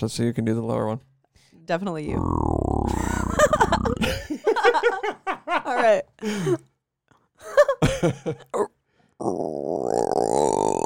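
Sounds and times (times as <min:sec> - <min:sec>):
speech: 0:00.0 - 0:01.1, 0:01.7 - 0:06.7, 0:07.4 - 0:10.0
person grunting: 0:02.1 - 0:04.2, 0:08.6 - 0:10.8
low guttural vocal croak: 0:02.1 - 0:04.3, 0:08.6 - 0:10.8.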